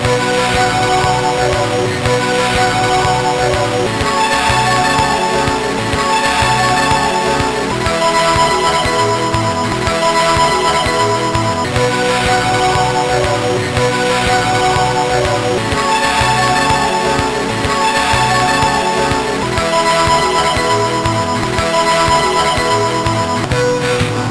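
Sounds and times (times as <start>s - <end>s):
MOS6581R2 SID chip music: 0.0s - 24.2s.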